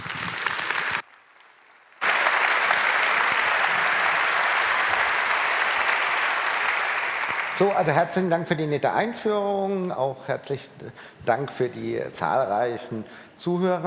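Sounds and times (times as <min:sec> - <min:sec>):
audience applause: 0:00.0 - 0:08.1
speech: 0:07.6 - 0:13.8.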